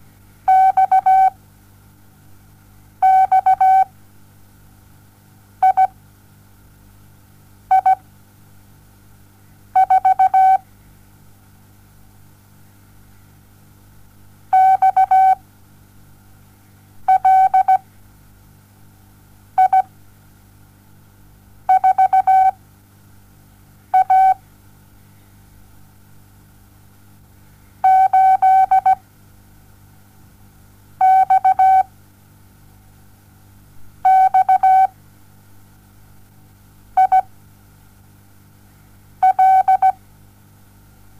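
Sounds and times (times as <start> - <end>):
morse code beeps: 0.5 - 1.4, 3.0 - 3.9, 5.6 - 5.9, 7.7 - 8.0, 9.8 - 10.6, 14.6 - 15.4, 17.1 - 17.8, 19.6 - 19.9, 21.7 - 22.6, 24.0 - 24.4, 27.8 - 29.0, 31.0 - 31.9, 34.1 - 34.9, 37.0 - 37.3, 39.2 - 40.0.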